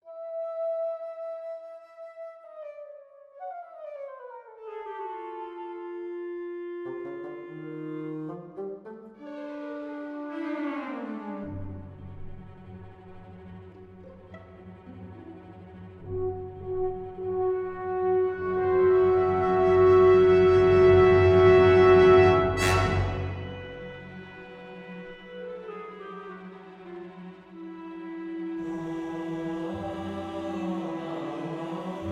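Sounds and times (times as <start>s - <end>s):
orchestra playing: 6.6s - 32.1s.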